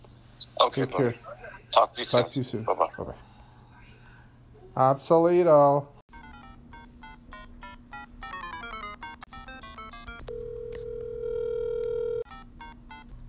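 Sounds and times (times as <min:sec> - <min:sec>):
speech: 0:00.6 - 0:03.3, 0:04.8 - 0:05.9
telephone beeping after a hang-up: 0:06.2 - 0:13.1.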